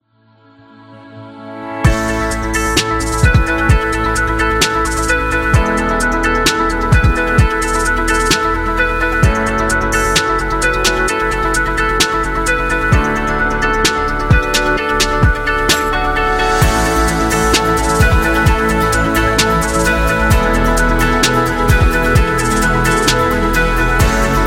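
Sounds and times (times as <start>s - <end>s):
ambient beat: 1.8s - 24.4s.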